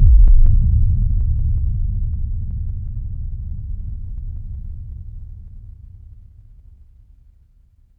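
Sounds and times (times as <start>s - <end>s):
horror heartbeat: 0.0s - 1.7s.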